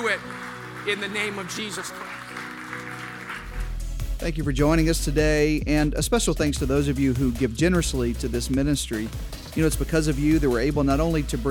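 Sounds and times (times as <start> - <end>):
speech: 0.0 - 2.3, 4.2 - 11.4
audience clapping hands: 0.0 - 4.1.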